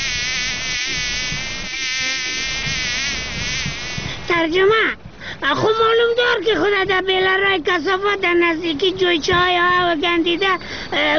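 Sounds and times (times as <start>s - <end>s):
fly buzzing: 0.0s - 4.2s
speech: 4.4s - 11.1s.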